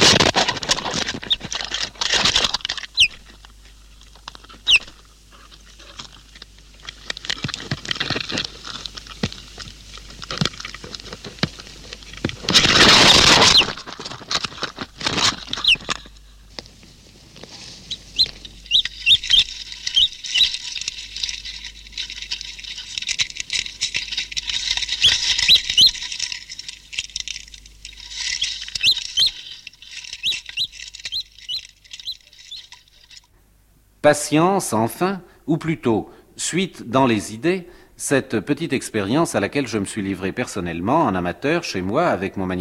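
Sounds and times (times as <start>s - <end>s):
light scratching and tapping: 0.0s - 33.3s
rustling: 0.0s - 33.4s
newly hatched chick cheeping: 2.9s - 3.2s, 4.6s - 4.9s, 15.6s - 15.9s, 17.8s - 20.5s, 28.8s - 29.5s, 30.2s - 32.7s
speech: 34.1s - 42.5s.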